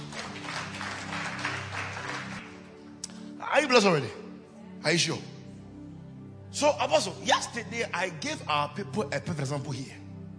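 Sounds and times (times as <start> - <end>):
crowd clapping their hands: 0.0 - 2.8
low sustained musical tone: 2.5 - 10.3
speech: 3.6 - 4.2, 4.8 - 5.3, 6.5 - 10.0.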